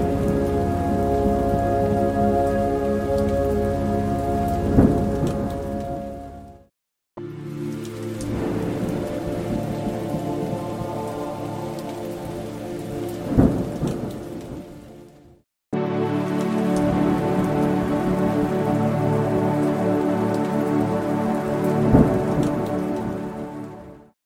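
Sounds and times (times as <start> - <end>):
ambient pad: 0.0 - 6.6, 7.2 - 14.6, 15.8 - 24.0.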